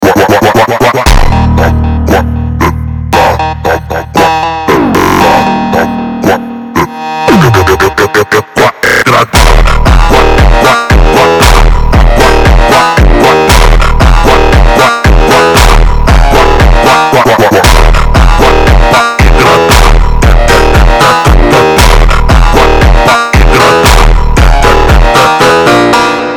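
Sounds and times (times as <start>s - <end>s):
funk music: 0.0s - 26.3s.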